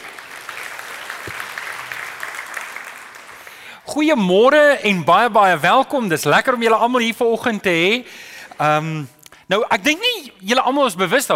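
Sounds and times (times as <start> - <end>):
audience clapping hands: 0.0 - 3.8
speech: 3.9 - 11.3.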